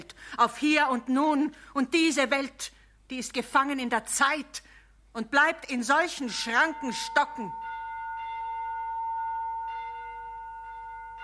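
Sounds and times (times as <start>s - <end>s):
speech: 0.2s - 7.6s
church bells ringing: 6.3s - 11.2s.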